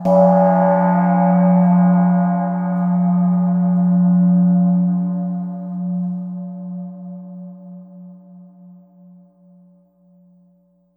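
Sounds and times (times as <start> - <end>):
gongscape: 0.0 - 7.2.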